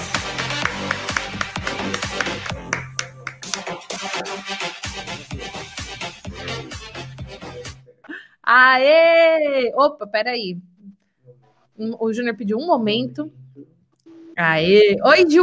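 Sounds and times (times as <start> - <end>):
crowd audience applause: 0.0 - 4.2
speech: 8.6 - 9.0, 9.6 - 10.7, 11.3 - 13.7, 14.4 - 15.4.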